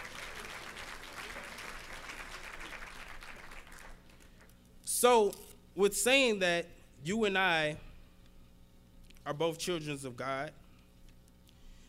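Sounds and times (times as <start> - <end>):
large crowd applause: 0.0 - 4.2
speech: 5.0 - 7.9, 9.3 - 10.6.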